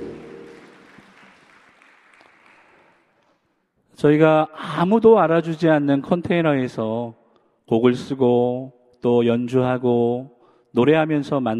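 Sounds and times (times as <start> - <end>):
audience applause: 0.0 - 3.1
speech: 4.0 - 11.5.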